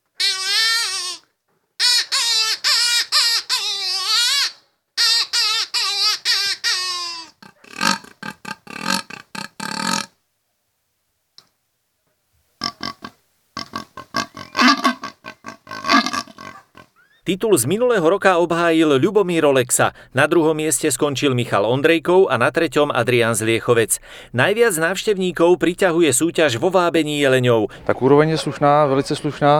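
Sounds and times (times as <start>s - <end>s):
imitated squealing of a hare: 0.1s - 1.2s, 1.8s - 10.1s, 12.6s - 17.4s
speech: 17.3s - 29.5s
laughter: 27.3s - 29.5s.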